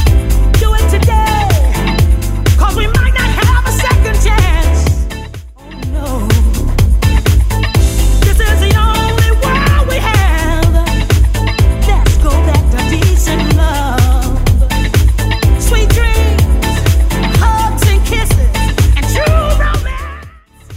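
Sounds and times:
90s style drum beat at 125 bpm: 0.0 - 20.7.

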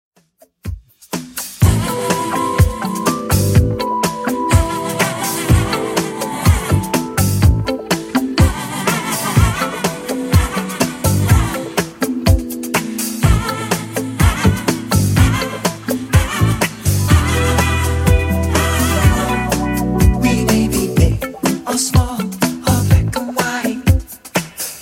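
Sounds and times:
1980s-style music at 124 BPM: 0.4 - 24.7.

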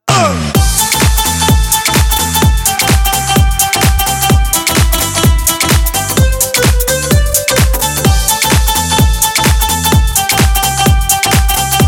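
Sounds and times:
dance drum beat at 128 bpm: 0.1 - 11.8.

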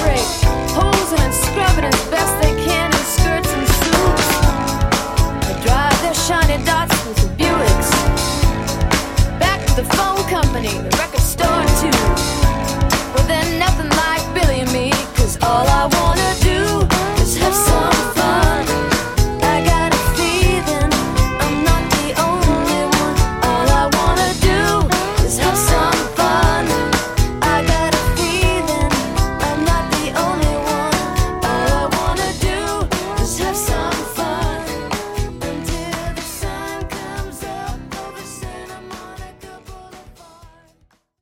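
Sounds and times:
pop rock drum beat at 120 BPM: 0.0 - 40.8.

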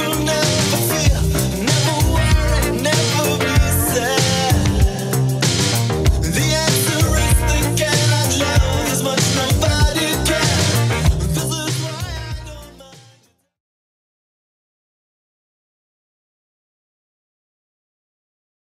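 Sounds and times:
80s Redrum drum machine beat: 0.0 - 13.0.

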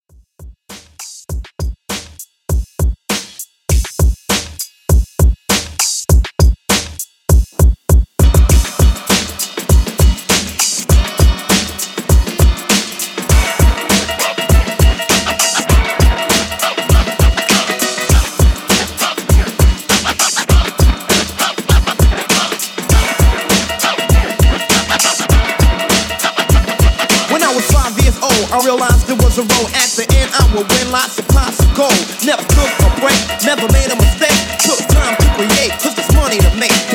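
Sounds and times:
1980s drum loop at 100 BPM: 0.1 - 36.9.

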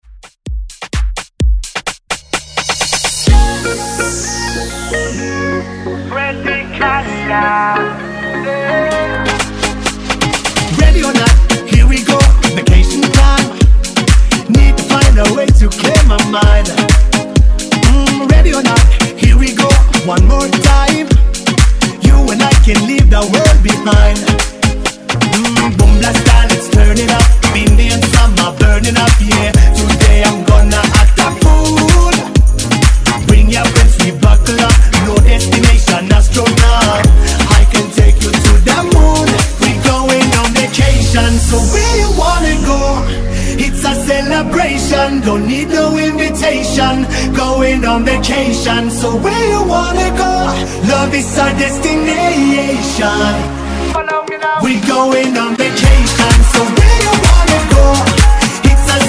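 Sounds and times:
house music: 0.0 - 59.0.

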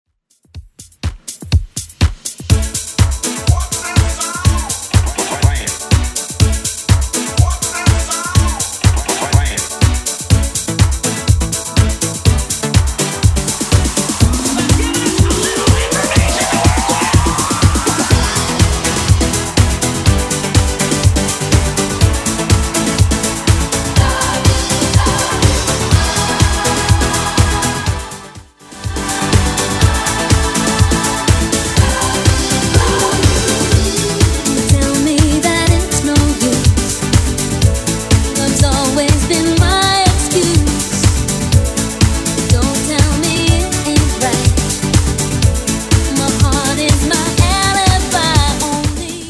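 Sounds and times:
90s electronic dance beat: 0.3 - 49.2.

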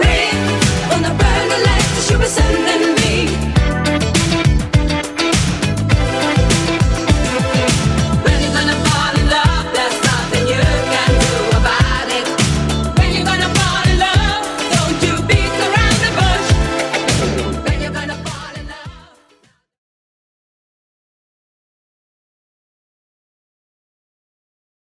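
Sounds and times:
80s drum beat: 0.0 - 19.0.

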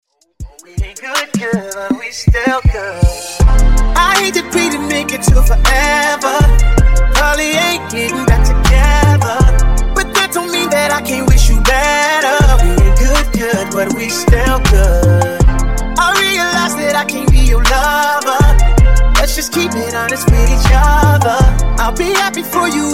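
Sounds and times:
uptempo funk music: 0.4 - 22.9.

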